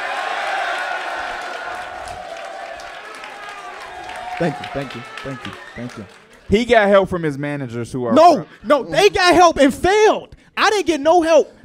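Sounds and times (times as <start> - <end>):
live audience cheering and clapping: 0.0 - 7.1
speech: 4.4 - 11.6.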